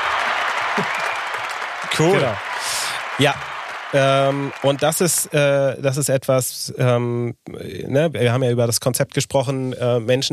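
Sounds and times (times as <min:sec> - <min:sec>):
crowd applause: 0:00.0 - 0:05.6
faint cheer: 0:00.0 - 0:05.8
speech: 0:00.8 - 0:01.0, 0:01.9 - 0:10.3.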